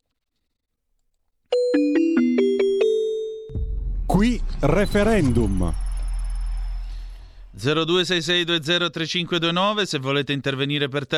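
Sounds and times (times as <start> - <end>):
radio programme jingle of bell-like chiming notes: 1.6 - 7.4
low rumbling burst: 3.6 - 7.9
speech: 4.2 - 5.8, 7.6 - 11.1.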